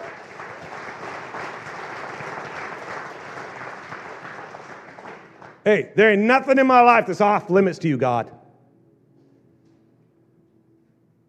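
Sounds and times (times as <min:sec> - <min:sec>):
audience applause: 0:00.0 - 0:05.6
speech: 0:05.7 - 0:08.4.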